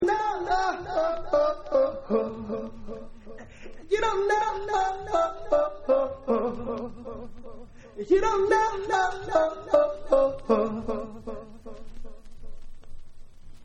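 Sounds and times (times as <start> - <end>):
a cappella singing mix: 0.0 - 12.6.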